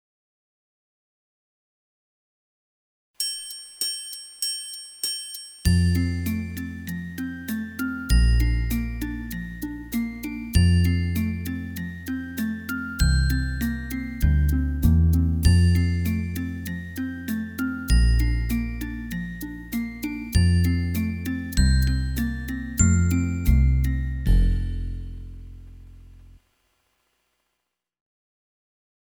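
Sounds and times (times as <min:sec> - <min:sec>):
Alberti bass study: 0:05.7 - 0:26.4.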